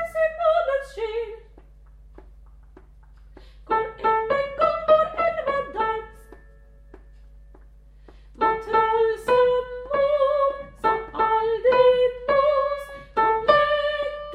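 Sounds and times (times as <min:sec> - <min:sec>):
soprano voice: 0:00.0 - 0:01.6, 0:03.7 - 0:06.4, 0:08.4 - 0:14.3.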